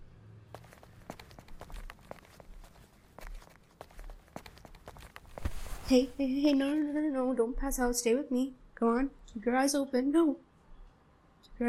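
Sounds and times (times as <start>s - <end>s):
footsteps walking: 0.5s - 6.8s
speech: 5.9s - 10.5s.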